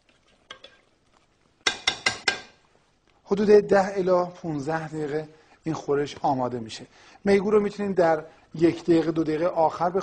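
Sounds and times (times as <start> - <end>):
utensil clinking against cookware: 0.5 - 0.8, 1.6 - 2.6
speech: 3.3 - 10.0.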